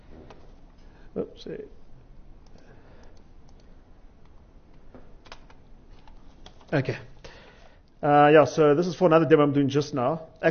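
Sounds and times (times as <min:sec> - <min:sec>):
low steady hiss: 0:00.0 - 0:10.5
speech: 0:01.2 - 0:01.8, 0:06.7 - 0:07.1, 0:08.0 - 0:10.5
faint typing on a computer keyboard: 0:05.2 - 0:06.8.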